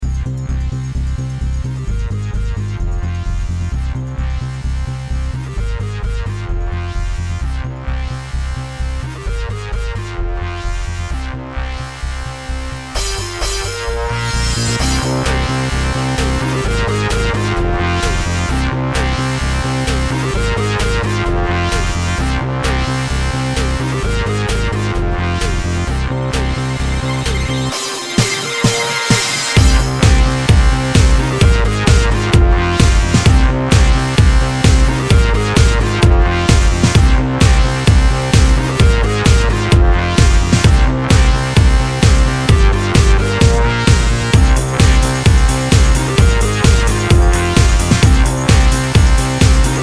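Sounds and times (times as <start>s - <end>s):
club mix dance music: 0.1s - 49.8s.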